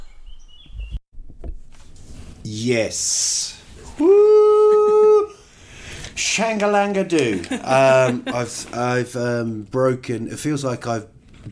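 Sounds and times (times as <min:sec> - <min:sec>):
birds singing outdoors: 0:00.0 - 0:01.0
speech: 0:02.5 - 0:04.1, 0:06.4 - 0:11.5
laughter: 0:04.1 - 0:05.3, 0:07.1 - 0:09.0.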